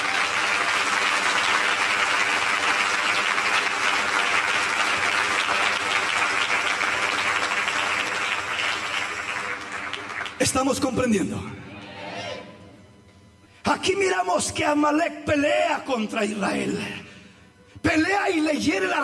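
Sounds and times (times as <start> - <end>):
audience applause: 0.0 - 10.9
speech: 10.4 - 11.7, 13.8 - 17.0, 17.9 - 19.0.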